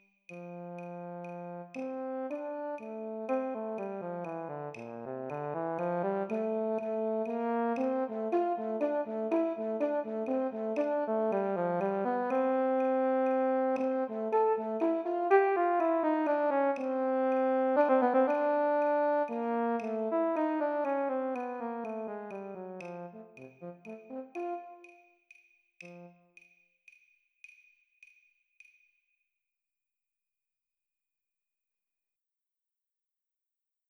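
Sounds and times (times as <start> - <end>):
trombone playing: 0.9 - 25.0, 25.8 - 26.2
euphonium playing: 5.3 - 24.9.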